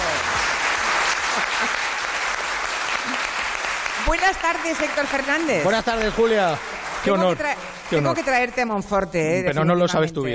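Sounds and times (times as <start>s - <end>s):
auditorium audience applause: 0.0s - 8.6s
speech: 4.1s - 10.3s.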